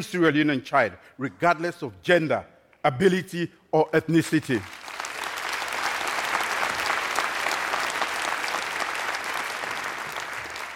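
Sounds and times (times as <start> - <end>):
speech: 0.0 - 4.8
crowd clapping: 4.4 - 10.7.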